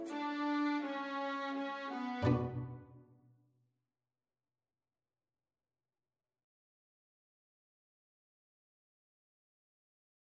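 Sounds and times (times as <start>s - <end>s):
viola: 0.0s - 3.0s.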